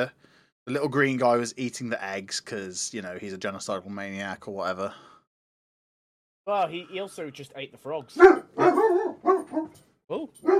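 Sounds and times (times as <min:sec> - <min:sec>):
speech: 0:00.0 - 0:05.1, 0:06.4 - 0:08.8, 0:09.6 - 0:10.5
dog barking and yelping: 0:08.2 - 0:09.8.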